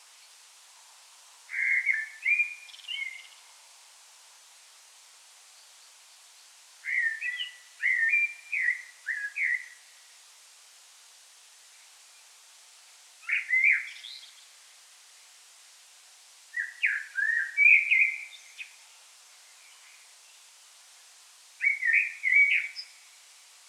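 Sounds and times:
common blackbird singing: 1.5s - 3.4s, 6.8s - 9.8s, 13.2s - 14.4s, 16.6s - 18.8s, 21.6s - 23.0s.

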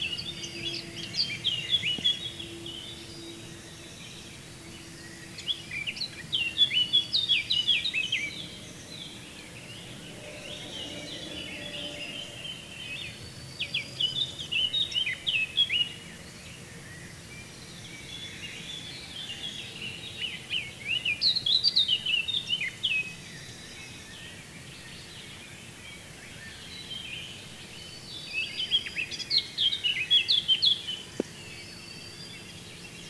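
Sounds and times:
Eurasian blackcap song of twittering warbled notes: 0.0s - 33.0s.

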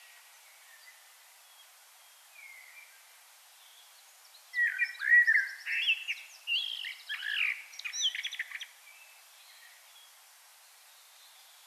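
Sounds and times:
common blackbird singing: 4.5s - 9.8s.

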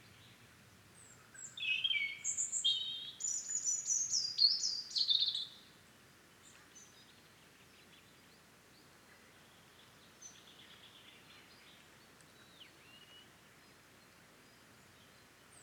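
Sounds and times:
European robin singing: 1.4s - 5.6s.

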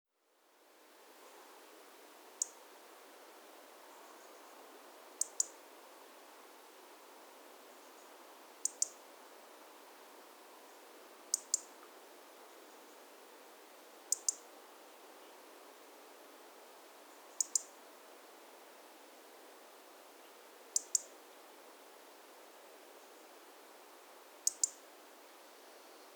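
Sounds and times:
faint steady hiss: 0.2s - 26.1s
European robin ticking calls: 2.3s - 2.6s, 5.2s - 5.6s, 8.6s - 9.0s, 11.3s - 11.9s, 14.1s - 14.5s, 17.3s - 17.8s, 20.7s - 21.2s, 24.4s - 24.8s.

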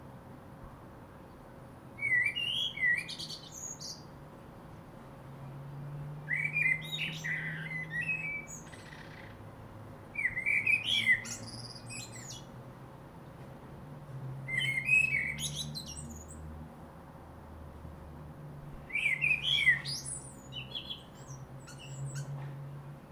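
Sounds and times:
common blackbird fluty song: 2.0s - 4.1s, 6.0s - 9.5s, 10.1s - 12.5s, 14.4s - 16.5s, 18.8s - 23.1s.

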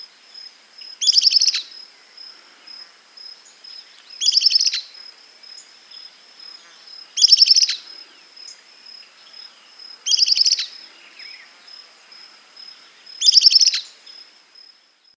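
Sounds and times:
bird buzzy trilling call: 0.8s - 1.8s, 3.8s - 5.0s, 6.5s - 8.3s, 9.4s - 11.6s, 12.8s - 14.2s.

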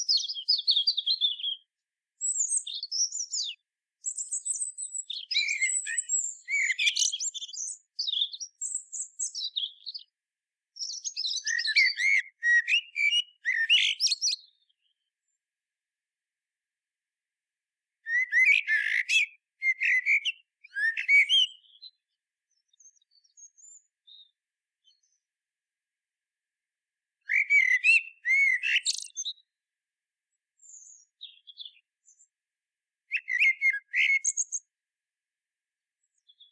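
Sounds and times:
common blackbird singing: 0.0s - 1.6s, 2.2s - 10.1s, 10.8s - 15.0s, 18.0s - 22.0s, 27.3s - 29.5s, 30.6s - 31.8s, 33.1s - 34.6s, 36.2s - 36.4s.

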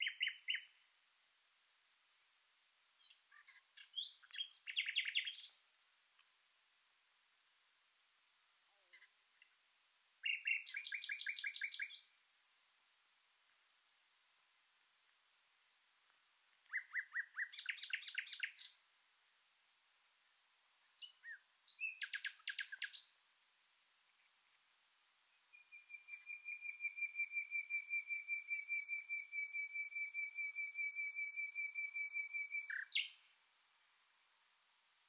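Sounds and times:
common nightingale singing: 0.0s - 0.8s, 3.0s - 5.6s, 8.4s - 12.2s, 14.8s - 18.8s, 21.0s - 23.2s, 25.3s - 33.4s.

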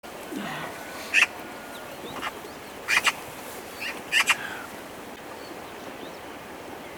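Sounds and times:
Eurasian magpie rasping: 0.2s - 4.8s.

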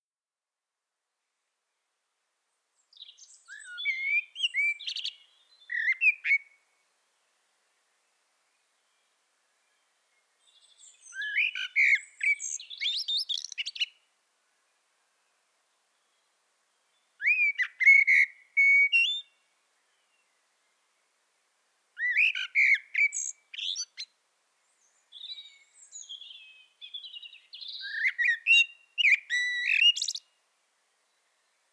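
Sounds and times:
Eurasian blackbird singing: 2.9s - 6.6s, 10.4s - 14.0s, 16.9s - 20.4s, 22.0s - 24.1s, 24.7s - 30.3s.

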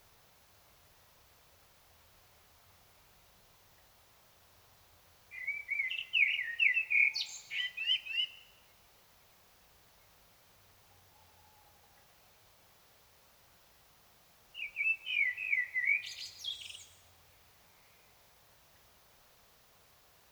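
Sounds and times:
common blackbird singing: 5.3s - 8.6s, 14.6s - 17.0s.

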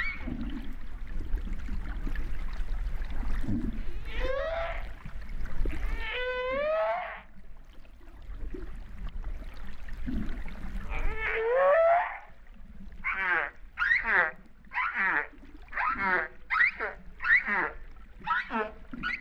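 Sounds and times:
humpback whale calling: 0.0s - 0.8s, 3.6s - 7.4s, 10.8s - 19.2s
low rumbling water: 0.0s - 19.2s.

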